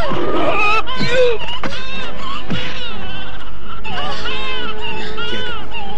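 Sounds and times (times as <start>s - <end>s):
tiger yowling in pain after a blow: 0.0s - 1.5s
laughter: 0.0s - 5.9s.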